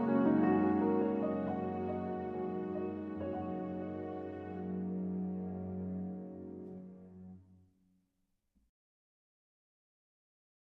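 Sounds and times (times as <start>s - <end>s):
strings: 0.0s - 7.4s.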